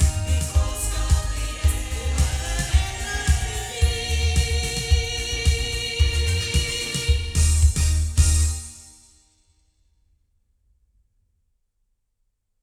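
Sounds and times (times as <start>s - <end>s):
omni loudspeakers sound: 0.0s - 8.4s.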